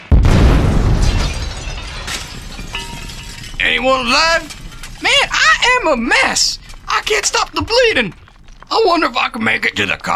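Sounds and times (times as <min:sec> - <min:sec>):
grenade explosion: 0:00.0 - 0:06.9
speech: 0:03.7 - 0:10.1.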